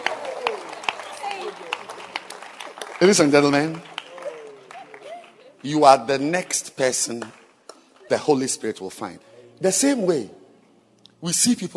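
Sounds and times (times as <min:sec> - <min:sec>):
audience clapping hands: 0:00.0 - 0:08.3
speech: 0:03.0 - 0:03.9, 0:05.6 - 0:07.4, 0:08.1 - 0:10.4, 0:11.2 - 0:11.7.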